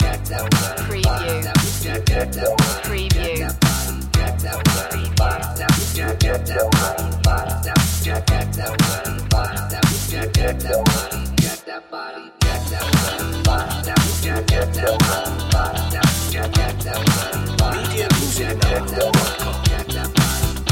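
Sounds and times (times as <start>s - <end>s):
funk music: 0.0s - 11.5s, 12.4s - 20.7s.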